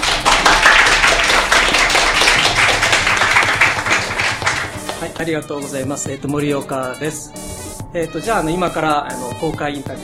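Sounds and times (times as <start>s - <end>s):
audience applause: 0.0s - 5.0s
speech: 5.2s - 10.0s.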